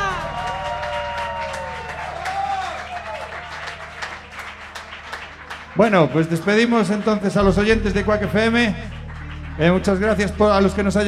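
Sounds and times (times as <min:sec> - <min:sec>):
loud audience applause: 0:00.0 - 0:11.0
speech: 0:05.8 - 0:09.0, 0:09.6 - 0:11.0.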